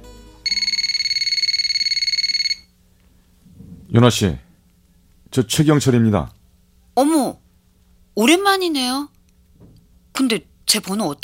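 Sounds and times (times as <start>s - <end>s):
quiet room hum: 0.0s - 11.2s
telephone ringing with trilling electronic tones: 0.4s - 2.7s
speech: 3.9s - 4.4s, 5.3s - 6.4s, 7.0s - 7.4s, 8.2s - 9.1s, 10.2s - 11.2s.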